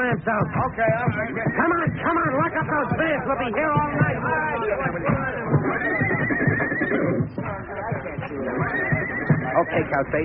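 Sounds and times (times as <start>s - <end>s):
speech: 0.1s - 5.4s, 9.6s - 10.2s
thoroughbreds and old nags whinnying: 1.0s - 2.6s, 4.6s - 7.4s, 8.3s - 10.1s.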